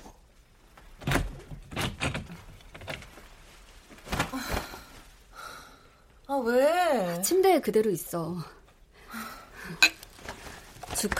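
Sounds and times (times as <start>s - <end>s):
door being opened with clunks and handle rattles: 1.0s - 3.0s
speech: 6.4s - 8.6s, 11.0s - 11.1s.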